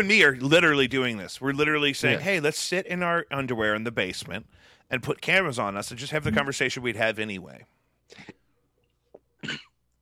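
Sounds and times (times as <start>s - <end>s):
speech: 0.0s - 8.4s, 9.4s - 9.7s
coughing: 8.1s - 8.6s, 9.2s - 9.8s.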